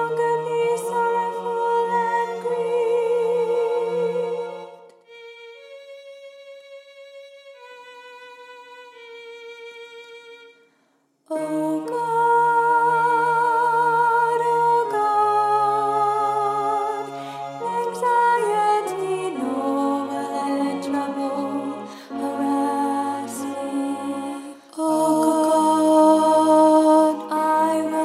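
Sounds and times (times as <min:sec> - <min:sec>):
soprano and alto choir singing choral music: 0:00.0 - 0:05.0, 0:11.3 - 0:28.0.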